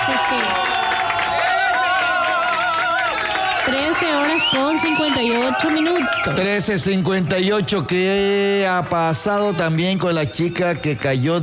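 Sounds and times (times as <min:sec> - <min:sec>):
continuous rush of crowd clapping: 0:00.0 - 0:06.4
crowd cheering with many excited voices: 0:00.0 - 0:11.4
speech: 0:03.7 - 0:11.4.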